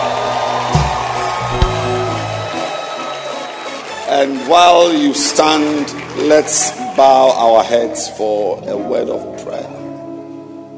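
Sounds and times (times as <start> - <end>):
audience clapping hands: 0.0 - 8.4
speech: 4.2 - 9.8.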